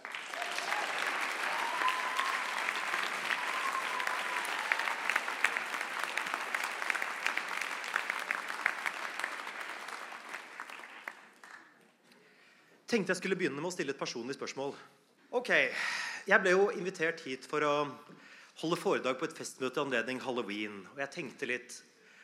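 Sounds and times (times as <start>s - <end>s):
audience applause: 0.0s - 11.7s
speech: 12.9s - 21.9s.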